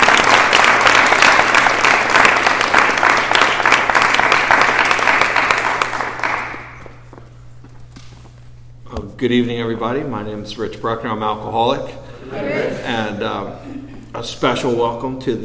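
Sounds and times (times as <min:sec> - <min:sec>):
crowd applauding: 0:00.0 - 0:07.0
speech: 0:09.2 - 0:15.4.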